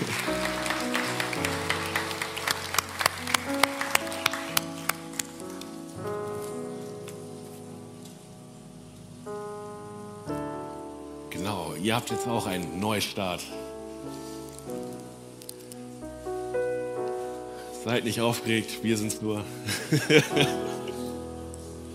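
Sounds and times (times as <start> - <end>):
crowd applause: 0.0 - 5.5
music with sustained chords: 0.0 - 21.9
speech: 11.9 - 13.6, 17.9 - 20.9
laughter: 19.6 - 21.1.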